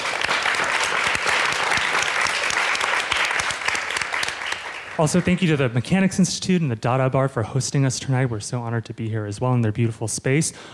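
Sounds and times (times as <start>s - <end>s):
audience applause: 0.0s - 5.7s
speech: 5.0s - 10.7s.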